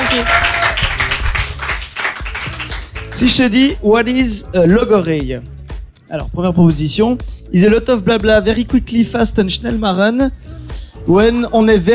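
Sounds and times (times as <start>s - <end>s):
audience applauding: 0.0s - 3.4s
speech: 0.2s - 0.4s, 3.2s - 11.9s.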